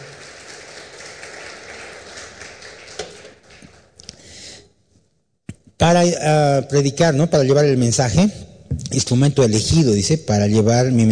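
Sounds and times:
crowd applause: 0.0s - 4.0s
speech: 5.8s - 11.1s.

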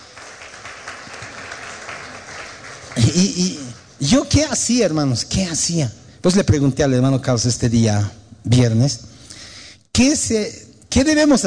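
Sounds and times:
audience applauding: 0.0s - 3.7s
speech: 3.0s - 9.1s, 10.0s - 11.4s.

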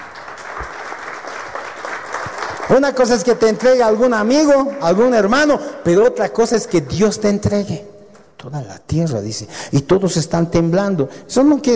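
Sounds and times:
congregation clapping during a sermon on the Book of Joshua: 0.0s - 5.6s
speech: 2.7s - 11.7s.

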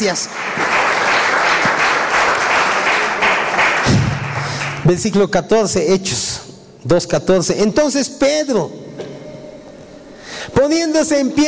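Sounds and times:
speech: 0.0s - 0.8s, 4.9s - 8.8s, 10.6s - 11.4s
audience applause: 0.0s - 4.9s.

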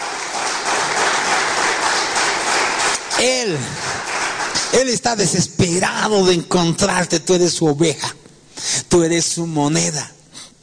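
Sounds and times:
audience applauding: 0.0s - 5.2s
speech: 3.2s - 4.0s, 4.7s - 10.2s.

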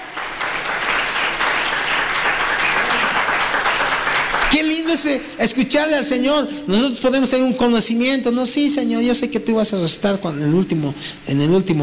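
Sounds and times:
audience applauding: 0.0s - 5.2s
speech: 4.5s - 11.8s.

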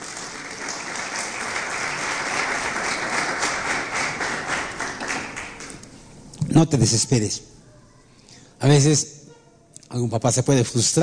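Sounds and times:
crowd applauding: 0.0s - 5.8s
speech: 6.6s - 7.6s, 8.6s - 9.2s, 9.9s - 11.0s.

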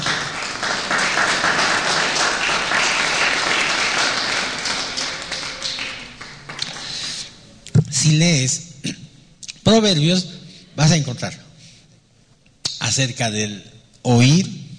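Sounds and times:
audience applause: 0.0s - 7.2s
speech: 8.1s - 9.0s, 9.7s - 11.4s, 13.0s - 14.6s.

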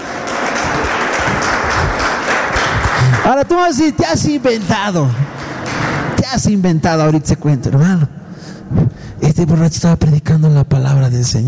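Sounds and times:
audience applause: 0.0s - 3.9s
speech: 3.2s - 5.3s, 6.3s - 11.4s.

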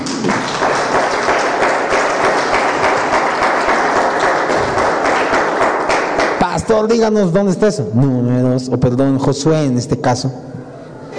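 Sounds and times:
audience clapping: 0.0s - 7.1s
speech: 6.7s - 10.6s.

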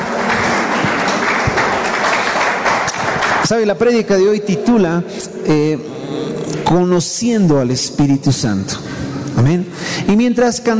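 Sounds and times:
large crowd applauding: 0.0s - 4.4s
speech: 3.5s - 10.7s.

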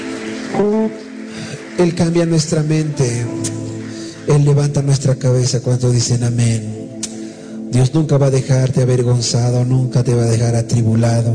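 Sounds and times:
audience applause: 0.0s - 5.4s
speech: 0.5s - 1.1s, 1.8s - 3.6s, 4.3s - 6.8s, 7.7s - 11.3s.

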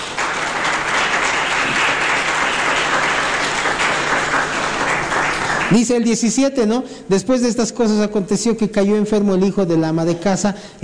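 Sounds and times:
audience applause: 0.0s - 6.0s
speech: 5.7s - 10.8s.

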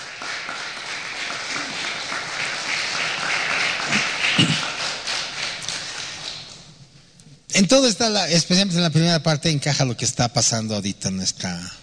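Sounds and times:
audience applause: 0.0s - 6.6s
speech: 7.6s - 11.8s.

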